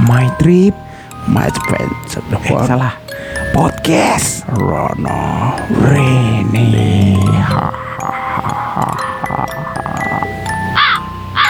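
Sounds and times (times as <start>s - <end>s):
steady tones: 0.0s - 11.4s
speech: 0.1s - 9.1s
bird cawing: 7.5s - 11.4s.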